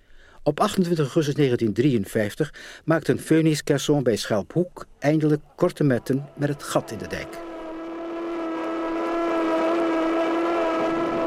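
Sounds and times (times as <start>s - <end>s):
speech: 0.4s - 7.5s
tugboat sirens: 5.7s - 11.2s.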